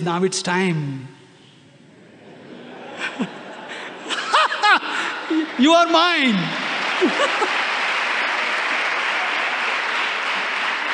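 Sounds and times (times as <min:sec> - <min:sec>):
speech: 0:00.0 - 0:01.2, 0:03.2 - 0:03.4, 0:05.3 - 0:07.6
laughter: 0:02.0 - 0:05.7, 0:06.6 - 0:09.0
audience clapping: 0:04.2 - 0:10.9.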